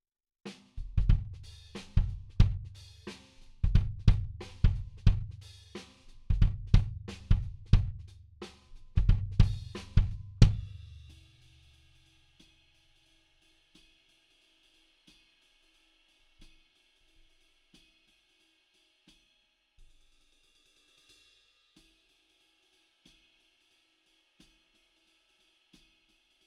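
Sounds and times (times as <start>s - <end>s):
kick drum: 0.8s - 1.4s, 2.0s - 2.7s, 3.6s - 5.4s, 6.3s - 8.1s, 9.0s - 10.7s.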